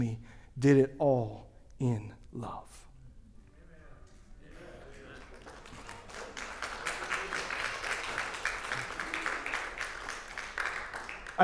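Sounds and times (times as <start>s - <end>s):
speech: 0.0s - 2.8s
audience applause: 4.5s - 11.4s.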